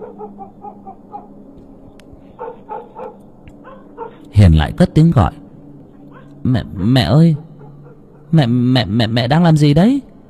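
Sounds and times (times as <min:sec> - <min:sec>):
black dog barking loudly and insistently: 0:00.0 - 0:01.4, 0:02.4 - 0:04.3, 0:06.1 - 0:06.4, 0:07.3 - 0:08.4
speech: 0:04.3 - 0:05.4, 0:06.4 - 0:07.4, 0:08.3 - 0:10.1.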